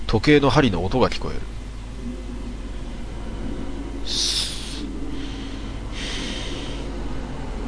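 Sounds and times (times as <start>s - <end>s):
speech: 0.1s - 1.6s
deliberate sleep breathing: 4.0s - 7.5s.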